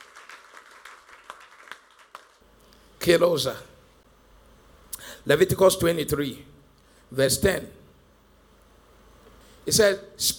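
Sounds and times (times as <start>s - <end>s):
audience clapping hands: 0.0s - 2.4s
speech: 3.0s - 3.7s, 5.2s - 6.5s, 7.1s - 7.8s, 9.7s - 10.3s.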